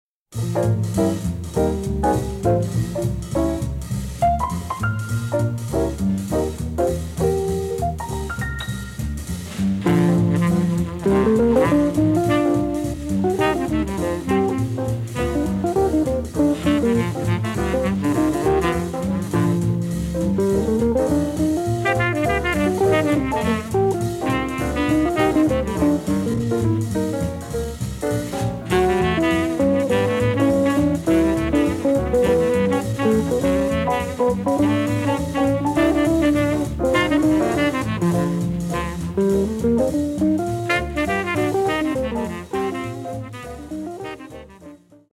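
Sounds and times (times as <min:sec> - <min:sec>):
swing music: 0:00.3 - 0:45.1.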